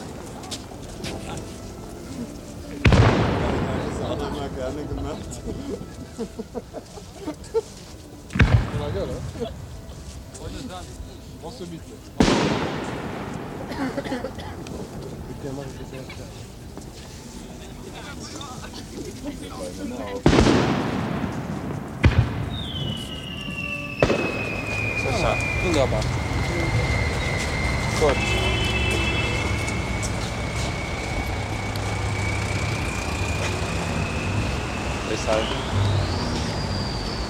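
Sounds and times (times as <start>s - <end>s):
low murmur of voices: 0.0s - 37.2s
fireworks exploding: 2.7s - 6.0s, 8.3s - 9.8s, 12.2s - 16.0s, 19.6s - 37.2s
laughter: 4.1s - 8.3s, 13.5s - 16.5s, 17.9s - 20.1s
speech: 4.6s - 7.6s, 9.0s - 9.7s, 10.5s - 14.6s, 15.4s - 17.0s, 18.3s - 21.0s, 25.2s - 26.8s, 28.0s - 28.6s, 35.1s - 35.7s
thin whistling tone: 22.5s - 37.2s.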